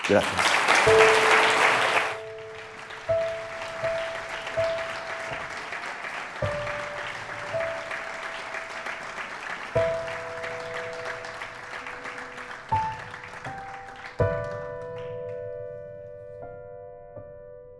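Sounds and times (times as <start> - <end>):
warm audience applause: 0.0 - 15.4
speech: 0.1 - 1.2.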